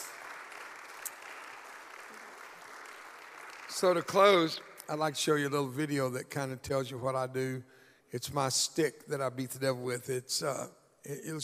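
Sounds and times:
audience clapping: 0.0s - 5.1s
speech: 3.7s - 11.4s.

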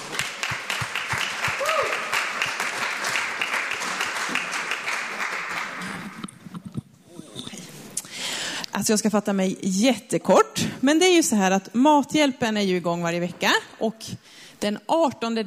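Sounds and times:
applause: 0.0s - 6.3s
speech: 8.8s - 15.4s.

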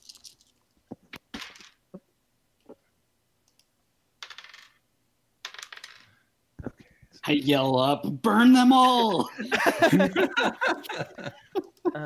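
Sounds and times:
dice rolling on a table: 0.0s - 1.8s, 4.2s - 4.8s, 5.4s - 6.2s
speech: 7.3s - 11.4s
laughter: 9.0s - 12.0s.

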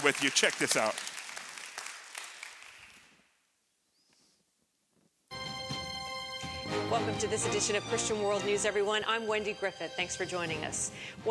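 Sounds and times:
speech: 0.0s - 1.1s, 6.7s - 11.2s
church congregation applauding: 0.0s - 3.2s.

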